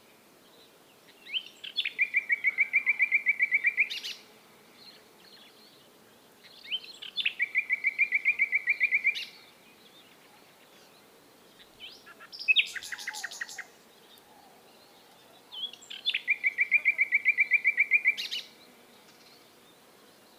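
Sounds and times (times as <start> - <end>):
common nightingale Luscinia megarhynchos singing varied whistles and chirps: 1.2 - 4.2, 6.5 - 10.4, 11.6 - 18.5.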